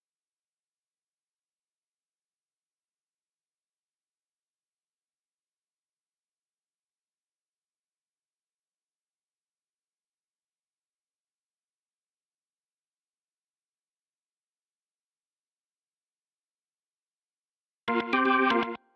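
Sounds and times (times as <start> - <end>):
organ: 17.9 - 18.8.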